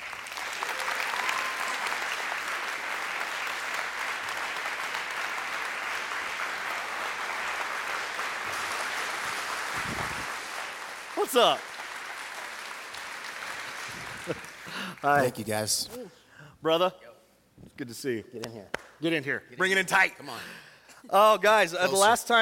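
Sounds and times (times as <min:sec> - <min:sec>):
church congregation applauding to welcome guests: 0:00.0 - 0:15.3
speech: 0:11.2 - 0:11.7, 0:15.0 - 0:17.0, 0:17.8 - 0:22.3.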